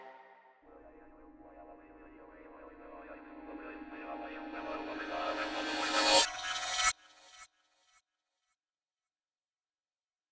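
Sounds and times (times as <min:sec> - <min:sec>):
percussion: 0:01.8 - 0:07.5.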